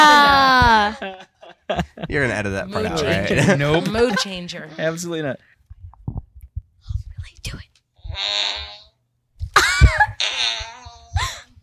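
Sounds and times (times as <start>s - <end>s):
laughter: 0.0s - 4.6s
speech: 2.1s - 5.5s, 7.4s - 8.8s
electronic fart noises from a phone app: 8.0s - 9.0s, 9.7s - 11.1s.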